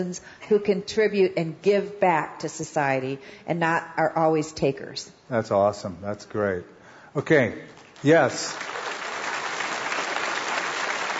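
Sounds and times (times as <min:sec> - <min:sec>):
speech: 0:00.0 - 0:08.8
clapping: 0:07.8 - 0:11.1.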